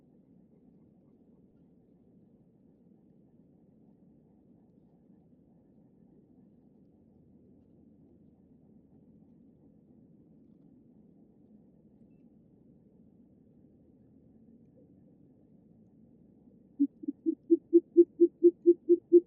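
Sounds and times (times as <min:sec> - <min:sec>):
short-eared owl low muffled hoots: 0:16.8 - 0:19.2.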